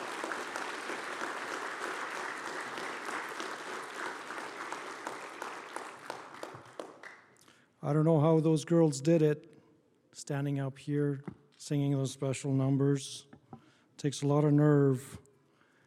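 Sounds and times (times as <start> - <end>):
audience applause: 0.0 - 7.3
speech: 7.8 - 9.5, 10.2 - 13.3, 14.0 - 15.2.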